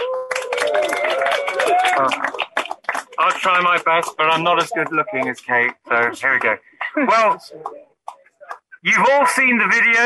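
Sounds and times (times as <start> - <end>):
audience applause: 0.0 - 6.6
speech: 2.0 - 2.4, 3.4 - 7.9, 8.8 - 10.0.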